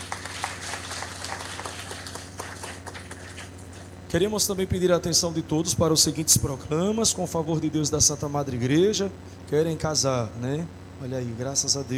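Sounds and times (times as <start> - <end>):
audience applause: 0.0 - 3.8
low steady hum: 0.0 - 11.9
speech: 4.1 - 11.9.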